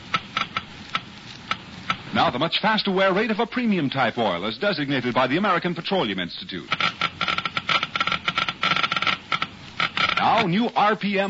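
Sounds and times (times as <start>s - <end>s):
low hiss: 0.0s - 11.2s
Geiger counter clicking: 0.1s - 2.1s, 6.7s - 10.5s
speech: 2.2s - 6.9s, 10.4s - 11.2s.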